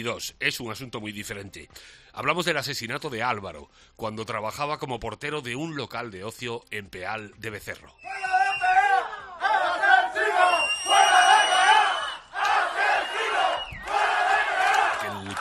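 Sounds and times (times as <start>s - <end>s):
speech: 0.0s - 8.4s
protesters shouting in the street: 8.0s - 15.1s.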